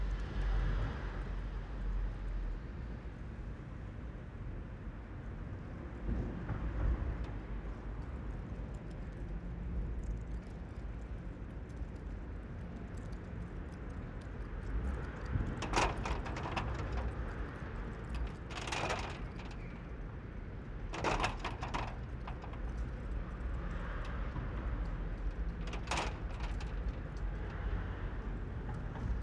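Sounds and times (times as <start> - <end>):
wind in a town parking space: 0.0 - 29.2
gate moving in wind: 15.2 - 29.2.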